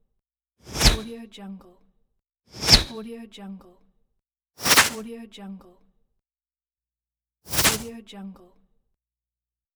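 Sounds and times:
arrow flyby whistle: 0.7 - 1.0, 2.5 - 3.0, 4.6 - 5.0, 7.5 - 7.9
bowstring twang: 4.6 - 5.0, 7.5 - 7.9.

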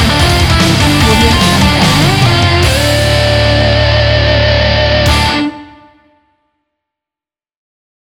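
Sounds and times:
metalcore music: 0.0 - 6.2.

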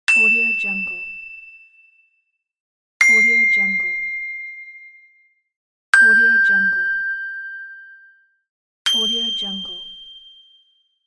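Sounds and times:
ding: 0.1 - 2.4, 3.0 - 11.0.

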